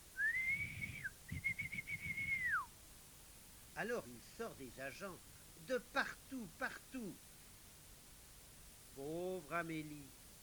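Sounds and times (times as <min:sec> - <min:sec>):
night guard officer blowing a whistle: 0:00.2 - 0:02.7
speech: 0:03.8 - 0:07.3, 0:09.0 - 0:10.2.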